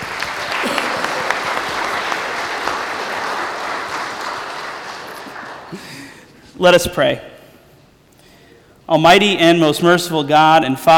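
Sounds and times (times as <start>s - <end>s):
audience applause: 0.0s - 6.2s
speech: 6.6s - 7.3s, 8.9s - 10.9s.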